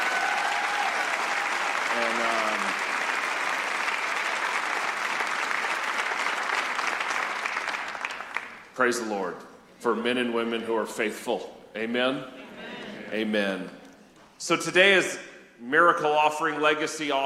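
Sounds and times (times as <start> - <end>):
voice cheering: 0.0 - 2.8
large audience applause: 0.0 - 8.7
speech: 2.0 - 2.5, 8.8 - 12.4, 13.1 - 13.8, 14.4 - 17.2.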